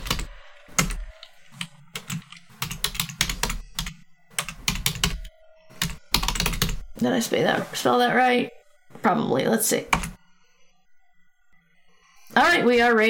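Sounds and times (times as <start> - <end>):
typing on a computer keyboard: 0.0 - 6.9, 9.9 - 10.2
speech: 7.0 - 10.0, 12.4 - 13.0.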